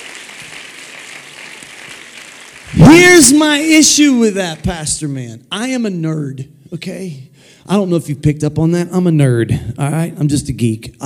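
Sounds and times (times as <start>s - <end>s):
crowd clapping hands loudly: 0.0s - 5.0s
speech: 2.8s - 11.0s.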